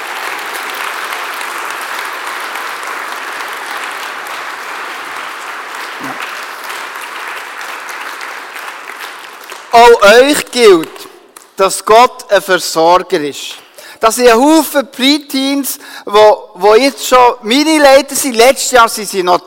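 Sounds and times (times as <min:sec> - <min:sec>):
audience applause: 0:00.0 - 0:10.8
speech: 0:09.8 - 0:11.0, 0:11.6 - 0:19.4.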